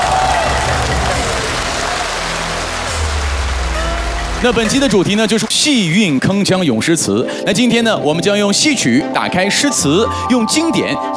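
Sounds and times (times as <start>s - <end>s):
audience clapping: 0.0s - 6.4s
speech: 4.4s - 11.1s.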